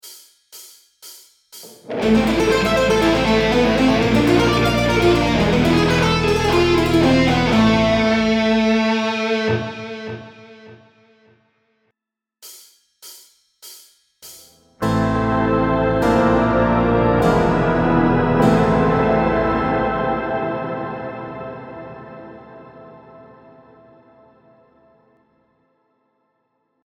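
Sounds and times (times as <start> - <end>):
sweeping neoclassical music: 1.9 - 10.3, 14.8 - 24.1.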